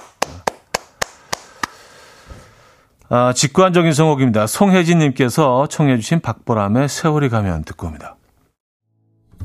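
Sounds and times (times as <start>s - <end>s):
applause: 0.0s - 1.8s
speech: 3.1s - 8.2s.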